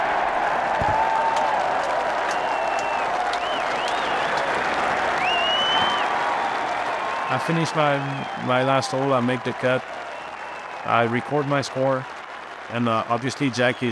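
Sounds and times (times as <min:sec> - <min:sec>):
large golf crowd roaring and applauding: 0:00.0 - 0:13.9
crowd whistles: 0:00.3 - 0:06.1, 0:08.0 - 0:08.5, 0:10.1 - 0:10.7
speech: 0:07.4 - 0:10.0, 0:10.8 - 0:13.9.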